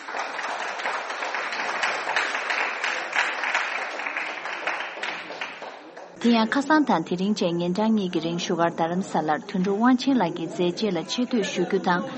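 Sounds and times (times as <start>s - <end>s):
audience applause at a film festival award announcement: 0.0s - 6.2s
speech: 6.2s - 12.1s.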